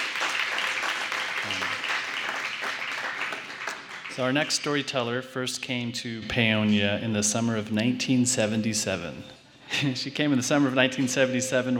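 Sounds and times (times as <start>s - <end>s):
audience applause: 0.0s - 4.4s
speech: 4.2s - 11.7s.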